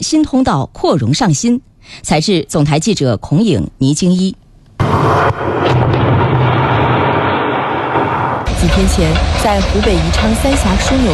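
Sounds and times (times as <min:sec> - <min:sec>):
speech: 0:00.0 - 0:06.2, 0:08.6 - 0:11.1
blasting explosion at excavation site of Three Gorges new channel: 0:04.8 - 0:10.6.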